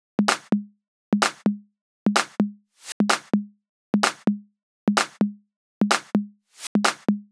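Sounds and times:
drums: 0.2 - 0.5, 1.2 - 1.4, 2.1 - 3.3, 4.0 - 4.2, 5.0 - 5.2, 5.9 - 7.2.

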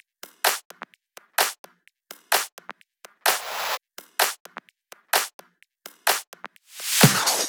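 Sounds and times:
drums: 0.4 - 1.6, 2.2 - 5.4, 6.0 - 7.4.

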